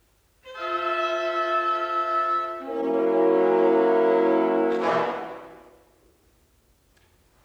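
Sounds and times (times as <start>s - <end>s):
orchestra music: 0.4s - 5.9s.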